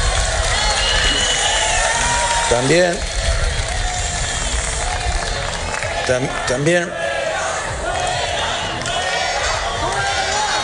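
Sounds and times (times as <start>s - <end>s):
crowd booing the minister of Social Security and Migration: 0.0s - 10.6s
speech: 2.5s - 3.1s, 6.1s - 7.0s.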